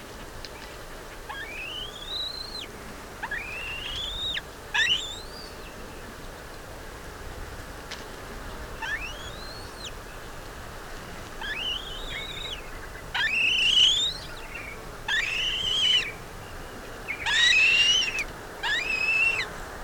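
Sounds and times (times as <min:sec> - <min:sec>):
Black-breasted buzzard Hamirostra Melanosternon giving whistled calls: 0:01.3 - 0:05.3, 0:08.8 - 0:09.9, 0:11.4 - 0:16.2, 0:17.2 - 0:19.5.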